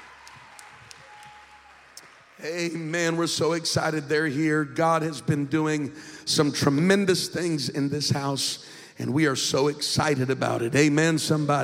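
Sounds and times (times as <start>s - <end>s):
audience applauding: 0.0s - 3.3s
speech: 2.4s - 11.6s.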